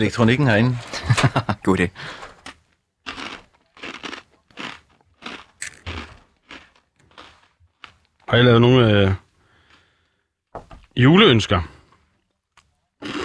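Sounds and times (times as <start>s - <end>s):
speech: 0.0s - 2.2s, 8.3s - 9.2s, 11.0s - 11.7s
laughter: 0.6s - 2.2s
person chewing roast duck: 2.4s - 8.3s, 9.5s - 10.2s, 12.5s - 13.2s.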